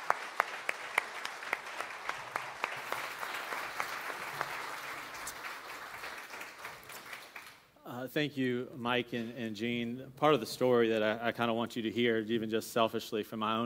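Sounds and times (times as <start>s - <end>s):
audience round of applause: 0.0s - 7.7s
speech: 8.1s - 13.6s.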